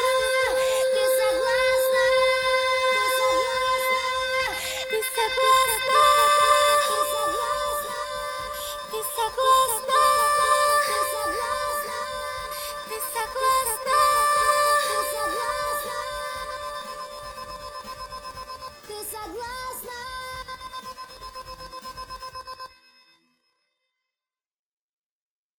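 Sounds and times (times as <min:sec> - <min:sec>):
chorus singing: 0:00.0 - 0:19.9.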